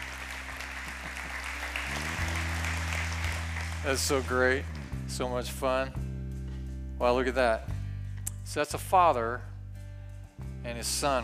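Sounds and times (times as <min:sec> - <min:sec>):
applause: 0:00.0 - 0:04.9
speech: 0:03.8 - 0:06.0, 0:07.0 - 0:07.7, 0:08.5 - 0:09.5, 0:10.6 - 0:11.2.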